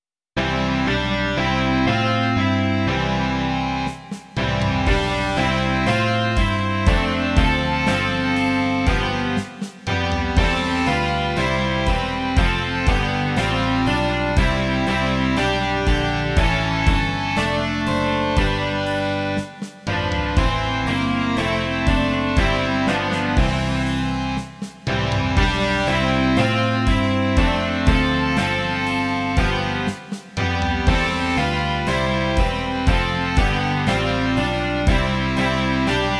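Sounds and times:
rock music: 0.4s - 36.1s.

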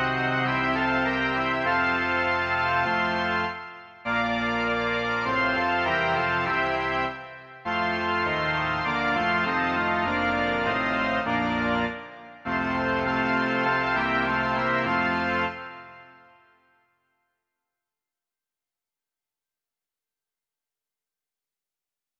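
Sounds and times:
pipe organ: 0.0s - 16.5s.

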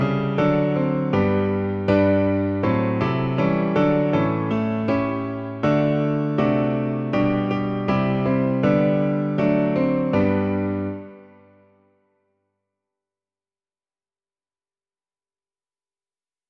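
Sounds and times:
piano: 0.0s - 12.4s.

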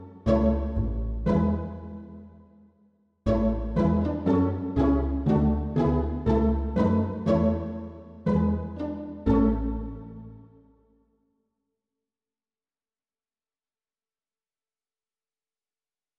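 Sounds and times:
string orchestra playing pizzicato: 0.0s - 2.4s, 3.3s - 10.5s.

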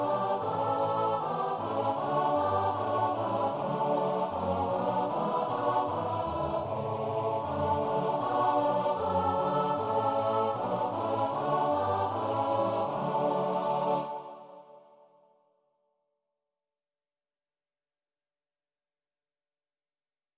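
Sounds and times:
choir singing: 0.0s - 15.2s.

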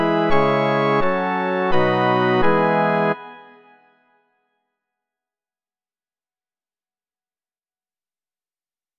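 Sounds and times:
organ: 0.0s - 3.7s.

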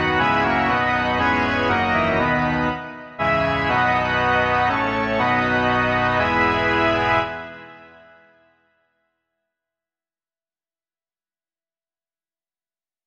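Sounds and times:
organ: 0.0s - 8.3s.

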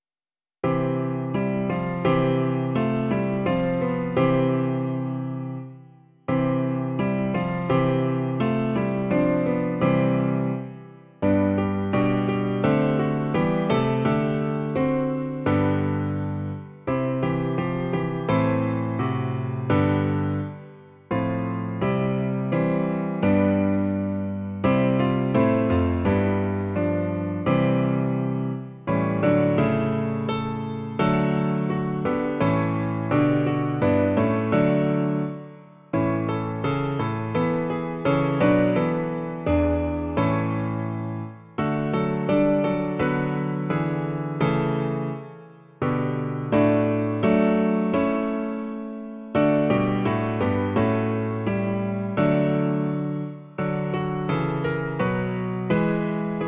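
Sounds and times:
piano: 0.0s - 56.4s.

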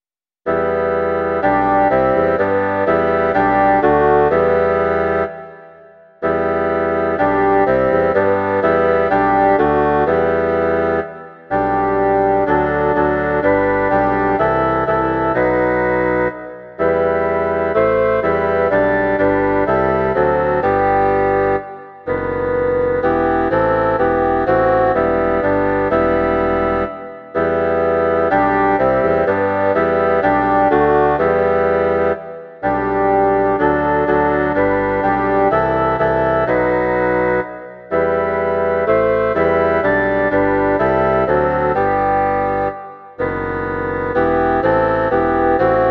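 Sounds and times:
bassoon quartet: 0.5s - 5.4s, 6.2s - 45.8s.

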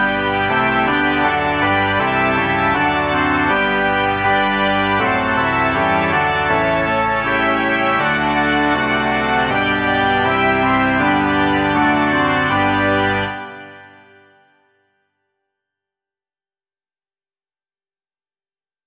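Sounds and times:
organ: 0.0s - 14.8s.

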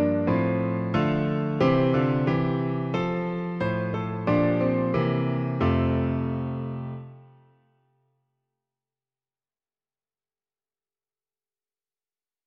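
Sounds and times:
piano version of a hymn: 0.0s - 7.5s.

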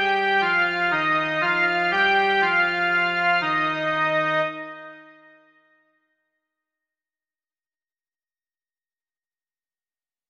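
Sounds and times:
melody: 0.0s - 5.4s.

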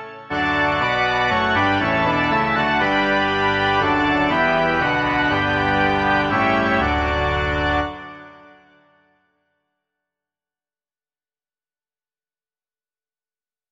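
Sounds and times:
organ: 0.0s - 9.0s.

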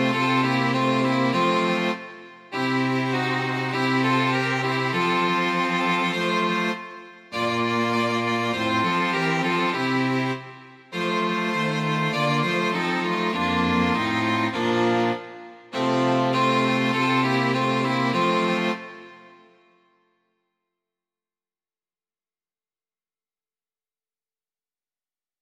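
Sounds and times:
string quartet: 0.0s - 19.4s.

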